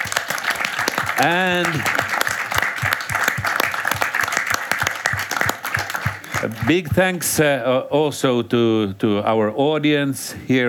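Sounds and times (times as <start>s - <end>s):
audience applause for panelists after a panel discussion: 0.0s - 7.2s
speech: 1.2s - 2.0s, 6.4s - 10.6s.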